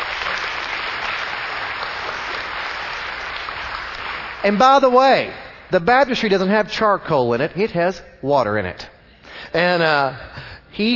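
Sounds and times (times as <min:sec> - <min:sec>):
audience applauding: 0:00.0 - 0:04.9
speech: 0:04.4 - 0:08.9, 0:09.5 - 0:10.9.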